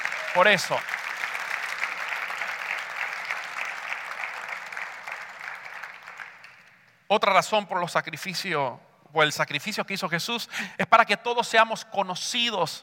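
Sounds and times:
audience applause: 0.0 - 6.7
speech: 0.4 - 1.0, 7.1 - 12.8.

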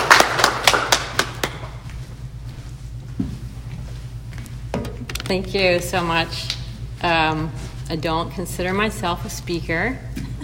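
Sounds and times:
audience applause: 0.0 - 1.7
low hum: 0.0 - 10.4
speech: 5.3 - 10.2.

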